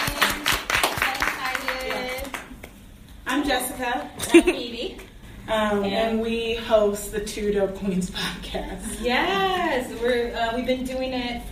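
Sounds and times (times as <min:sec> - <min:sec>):
audience clapping: 0:00.0 - 0:02.7
speech: 0:03.4 - 0:11.4.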